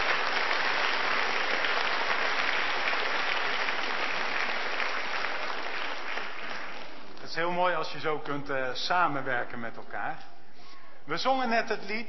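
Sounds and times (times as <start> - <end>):
audience applause: 0.0 - 7.2
speech: 7.4 - 10.3, 11.1 - 12.0.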